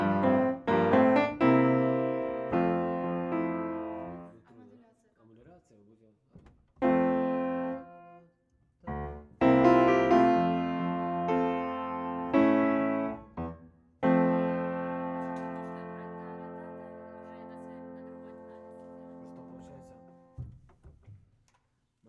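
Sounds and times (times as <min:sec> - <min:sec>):
piano: 0:00.0 - 0:04.4, 0:06.8 - 0:08.2, 0:08.8 - 0:20.6.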